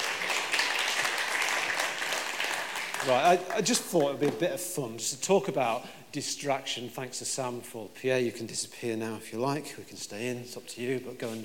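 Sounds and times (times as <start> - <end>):
crowd applause: 0.0 - 4.4
speech: 3.0 - 11.4.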